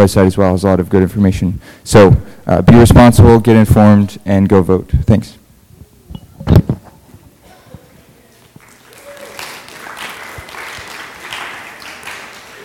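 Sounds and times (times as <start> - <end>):
speech: 0.0 - 5.4
applause after an announcement: 8.4 - 12.6.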